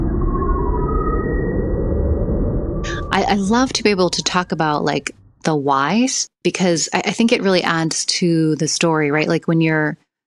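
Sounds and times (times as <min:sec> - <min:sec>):
sonified space telescope data rumbling low tones: 0:00.0 - 0:06.1
speech: 0:03.2 - 0:10.0.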